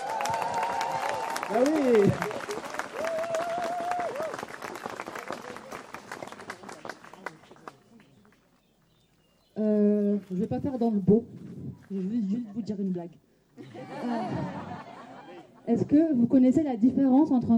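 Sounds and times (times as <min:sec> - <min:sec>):
audience applause: 0:00.0 - 0:08.2
speech: 0:01.5 - 0:02.3, 0:10.5 - 0:14.0, 0:15.8 - 0:17.5
laughter: 0:13.6 - 0:15.7.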